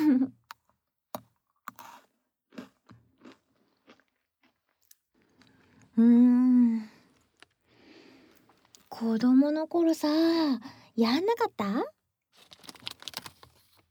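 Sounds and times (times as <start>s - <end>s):
crunching of eating Pocky biscuit sticks: 1.7s - 6.0s, 7.0s - 9.0s, 12.4s - 13.8s
speech: 6.0s - 6.4s, 9.0s - 12.0s.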